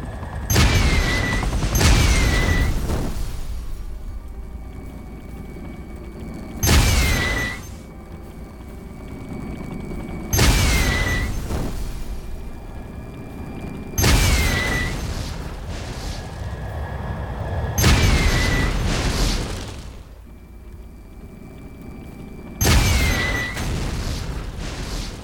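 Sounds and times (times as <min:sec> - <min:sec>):
video game rockets, nukes and explosions: 0:00.0 - 0:04.3, 0:06.4 - 0:07.9, 0:10.2 - 0:20.2, 0:22.6 - 0:25.2.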